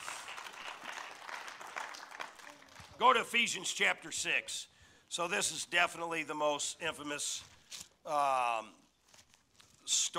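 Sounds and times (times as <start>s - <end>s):
audience applauding: 0.0s - 3.1s
speech: 3.0s - 8.8s, 9.9s - 10.1s.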